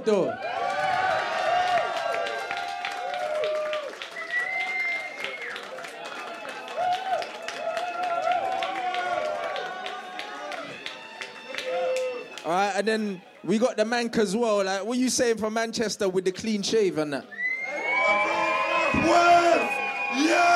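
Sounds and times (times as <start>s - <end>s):
speech: 0.0s - 0.6s, 12.8s - 17.4s
crowd applauding: 0.3s - 12.7s, 17.6s - 20.5s.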